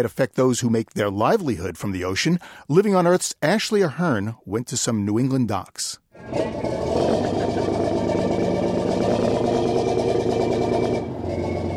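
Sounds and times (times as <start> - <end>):
speech: 0.0 - 7.4
fishing vessel engine idling at dock: 6.2 - 11.7.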